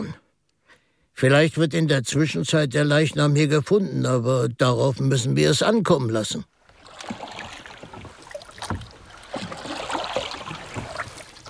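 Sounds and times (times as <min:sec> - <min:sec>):
speech: 0:01.2 - 0:07.2
oars rowing a small boat upstream: 0:05.4 - 0:11.4.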